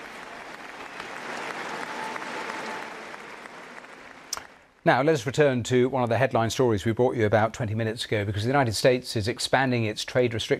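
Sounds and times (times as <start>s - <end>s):
large crowd in Oslo clapping to welcome the new king: 0.0s - 4.8s
speech: 4.8s - 10.5s.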